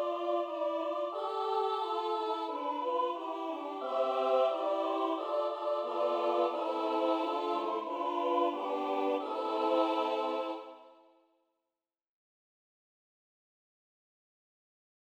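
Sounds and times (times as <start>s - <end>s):
carol singing in Dobrogea Romania: 0.0s - 10.9s.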